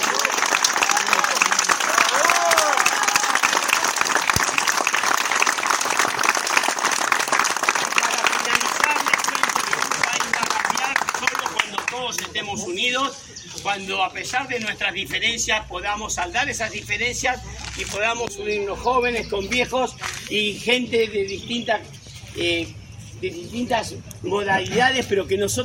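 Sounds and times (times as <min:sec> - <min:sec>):
audience applause: 0:00.0 - 0:12.3
speech: 0:12.4 - 0:25.6.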